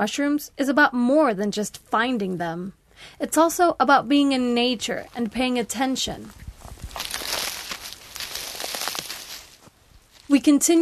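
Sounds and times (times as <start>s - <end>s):
speech: 0.0s - 6.4s, 10.3s - 10.8s
footsteps crunching dry leaves: 6.2s - 10.4s.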